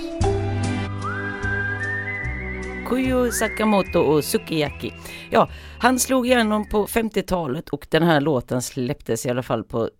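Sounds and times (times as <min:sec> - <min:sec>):
whistling melody in a song: 0:00.0 - 0:07.1
speech: 0:02.9 - 0:09.9.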